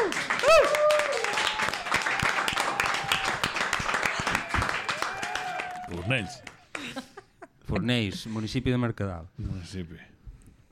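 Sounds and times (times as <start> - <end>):
audience applause: 0.0 - 7.0
speech: 6.1 - 6.5, 7.7 - 10.1.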